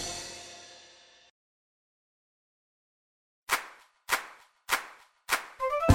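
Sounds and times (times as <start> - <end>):
clap: 3.5 - 5.7.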